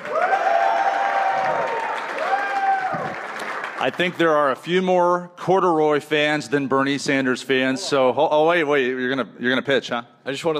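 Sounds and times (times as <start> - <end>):
audience whooping and cheering: 0.0 - 3.8
audience applause: 0.0 - 4.3
speech: 3.8 - 10.5.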